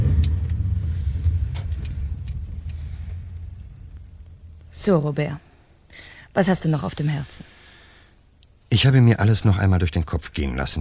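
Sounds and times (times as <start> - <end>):
car engine rumble pulling into a parking lot and stopping: 0.0 - 5.3
speech: 4.8 - 5.5, 6.4 - 7.6, 8.8 - 10.7.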